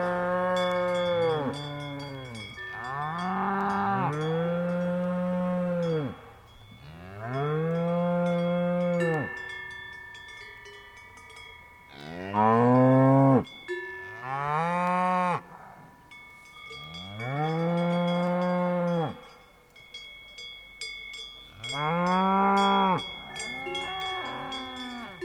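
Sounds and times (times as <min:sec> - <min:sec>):
cow mooing: 0:00.0 - 0:06.2, 0:06.8 - 0:09.3, 0:11.9 - 0:13.5, 0:14.2 - 0:15.8, 0:21.6 - 0:25.2
cowbells clinking: 0:00.0 - 0:25.2.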